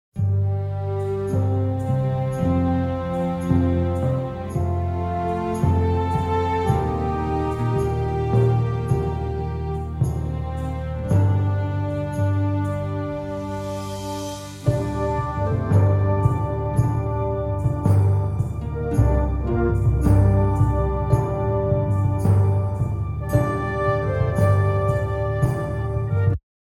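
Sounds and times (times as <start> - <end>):
forest day music: 0.1 - 26.4.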